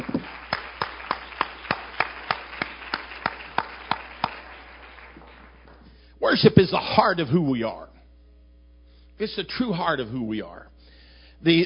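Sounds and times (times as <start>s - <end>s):
audience clapping: 0.0s - 6.1s
speech: 6.3s - 7.9s, 9.2s - 10.7s, 11.4s - 11.6s.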